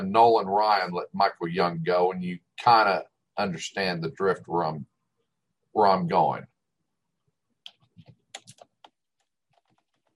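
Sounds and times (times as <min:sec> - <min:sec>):
speech: 0:00.0 - 0:04.9, 0:05.8 - 0:06.5
typing a message on a computer keyboard: 0:07.7 - 0:10.1.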